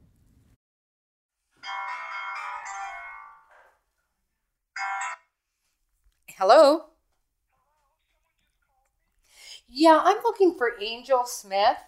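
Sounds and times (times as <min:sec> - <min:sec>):
phone ringing tone on an outgoing call: 0:01.6 - 0:03.7, 0:04.8 - 0:05.4
speech: 0:06.4 - 0:06.9, 0:09.8 - 0:11.8.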